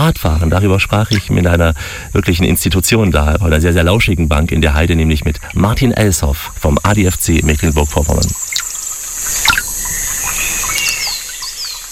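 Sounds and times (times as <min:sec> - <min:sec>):
birds chirping and calling: 0:00.0 - 0:11.9
speech: 0:00.1 - 0:08.7
trickling water in woodland: 0:01.0 - 0:02.8, 0:04.5 - 0:11.9.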